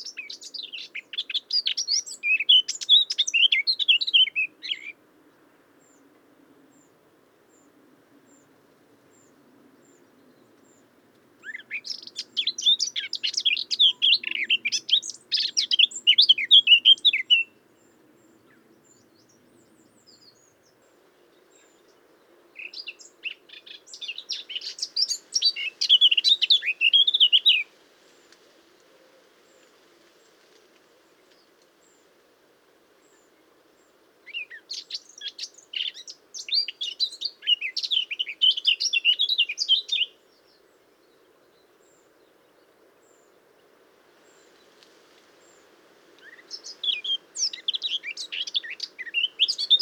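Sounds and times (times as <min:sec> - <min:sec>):
Eurasian blackcap singing warble: 0:00.0 - 0:05.0, 0:11.4 - 0:17.6, 0:22.6 - 0:27.7, 0:34.3 - 0:40.2, 0:46.2 - 0:49.8.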